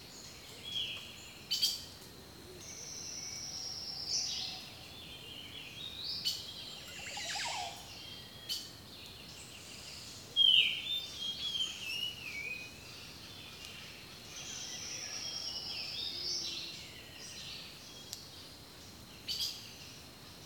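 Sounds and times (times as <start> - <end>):
steady high insect drone: 0.0 - 20.4
birds whistling and chirping: 6.3 - 7.9, 10.4 - 12.7.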